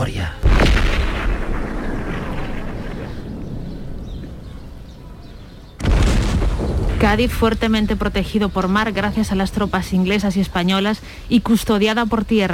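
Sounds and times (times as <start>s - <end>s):
heavy cannon fire bombarding a city: 0.4s - 9.5s
speech: 7.0s - 12.5s.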